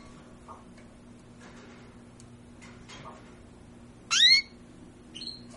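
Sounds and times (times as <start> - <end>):
bird downward-sweeping squealing calls: 4.1 - 4.5.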